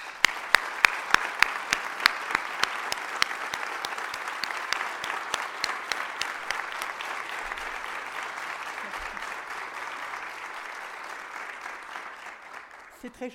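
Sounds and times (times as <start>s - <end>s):
audience applause: 0.0s - 13.1s.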